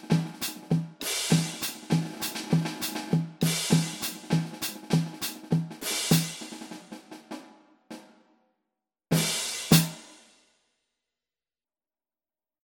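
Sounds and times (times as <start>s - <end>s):
drum kit: 0.0s - 8.2s, 9.1s - 10.3s.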